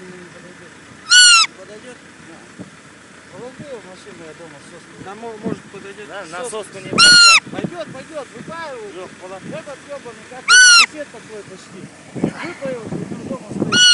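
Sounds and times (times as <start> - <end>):
roe deer fawn calling: 1.0 - 1.6, 6.9 - 7.6, 10.4 - 11.0, 13.7 - 13.9.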